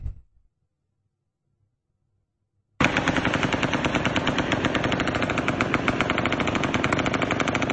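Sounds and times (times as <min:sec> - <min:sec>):
brief thump: 0:00.0 - 0:00.3
rapid rifle gunfire: 0:02.8 - 0:07.7.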